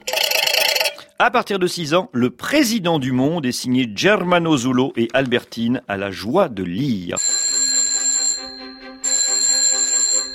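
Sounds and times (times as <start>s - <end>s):
telephone ringing in long trilling bursts: 0.0s - 1.0s, 7.2s - 10.3s
speech: 1.2s - 7.3s.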